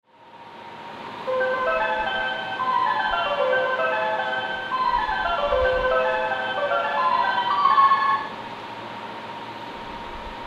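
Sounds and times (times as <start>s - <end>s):
melody: 1.3s - 8.3s.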